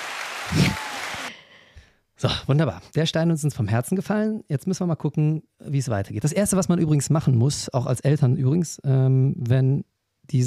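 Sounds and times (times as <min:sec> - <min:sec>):
applause sound effect: 0:00.0 - 0:01.3
speech: 0:02.2 - 0:10.4.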